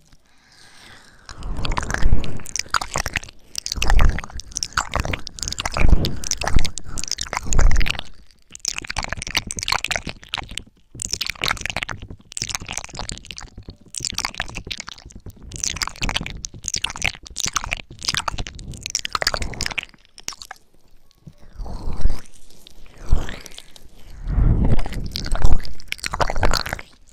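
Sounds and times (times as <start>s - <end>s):
ear licking and mouth sounds with wet smacks, clicks and chewing: 0.0s - 27.1s.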